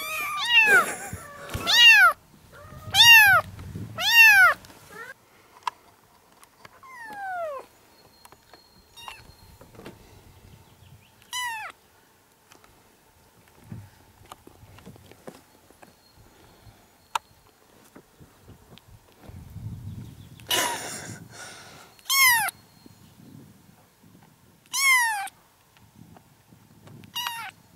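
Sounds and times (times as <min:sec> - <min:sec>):
kittens meowing: 0:00.0 - 0:03.4, 0:04.0 - 0:05.1, 0:11.3 - 0:11.7, 0:24.7 - 0:25.3, 0:27.1 - 0:27.5.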